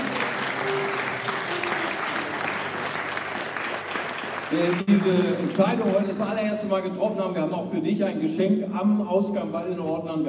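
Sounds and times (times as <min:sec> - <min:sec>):
audience applauding: 0:00.0 - 0:06.6
speech: 0:04.5 - 0:10.2.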